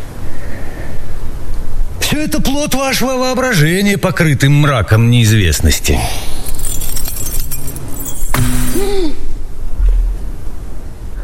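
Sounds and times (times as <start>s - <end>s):
steady low hum: 0.0s - 11.2s
speech: 2.2s - 6.4s
bunch of keys thrown down: 5.7s - 9.1s.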